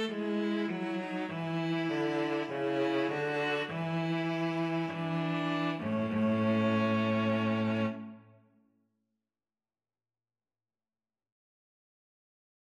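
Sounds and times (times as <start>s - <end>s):
string trio playing: 0.0s - 8.3s.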